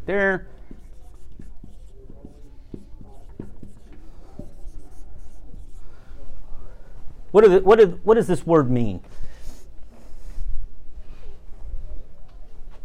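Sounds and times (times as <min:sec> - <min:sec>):
noise: 0:00.0 - 0:12.8
speech: 0:00.1 - 0:00.6, 0:07.4 - 0:09.3
writing strokes on a board: 0:00.5 - 0:06.0.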